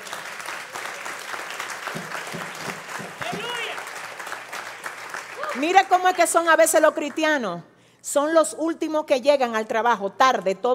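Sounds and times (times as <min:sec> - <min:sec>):
audience applause: 0:00.0 - 0:06.1
raised voices and cheers: 0:03.2 - 0:03.9, 0:05.4 - 0:05.7
speech: 0:05.6 - 0:10.7.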